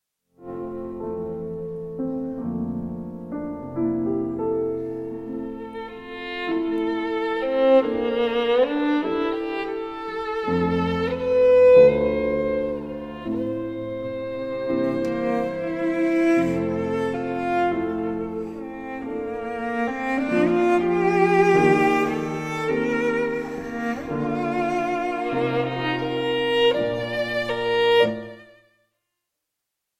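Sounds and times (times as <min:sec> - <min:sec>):
piano trio in D minor: 0:00.4 - 0:28.5.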